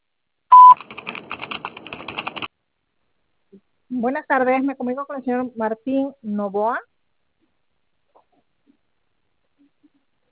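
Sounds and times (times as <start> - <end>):
telephone line voicemail beep: 0.5 - 0.8
faint rapid clicks: 0.7 - 2.5
speech: 4.0 - 6.9.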